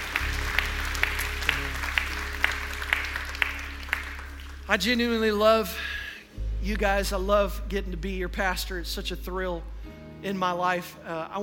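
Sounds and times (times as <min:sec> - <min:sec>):
hands clapping: 0:00.0 - 0:05.4
speech: 0:04.7 - 0:05.9, 0:06.6 - 0:11.4.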